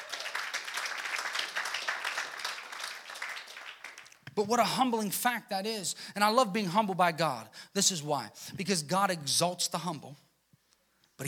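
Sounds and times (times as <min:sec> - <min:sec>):
audience clapping: 0:00.0 - 0:04.4
speech: 0:04.4 - 0:10.3.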